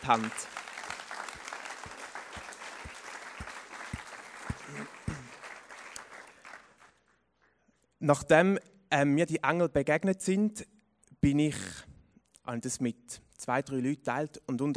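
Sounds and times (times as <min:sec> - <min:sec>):
audience applause: 0:00.0 - 0:07.0
speech: 0:00.1 - 0:00.6, 0:08.0 - 0:11.9, 0:12.5 - 0:14.7.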